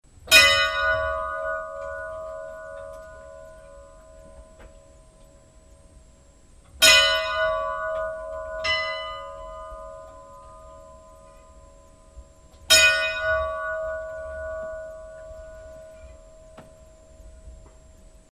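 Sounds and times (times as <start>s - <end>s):
Hvalsnes church bells ringing: 0.3s - 18.3s.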